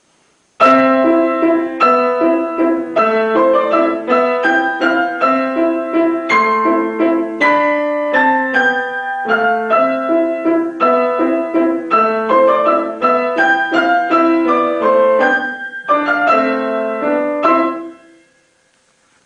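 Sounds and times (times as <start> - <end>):
small romantic waltz: 0.6 - 19.2.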